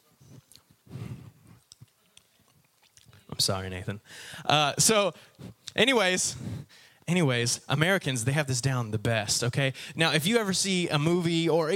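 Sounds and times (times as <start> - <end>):
small breath mint crunched between teeth: 1.6 - 3.3
speech: 3.4 - 11.7.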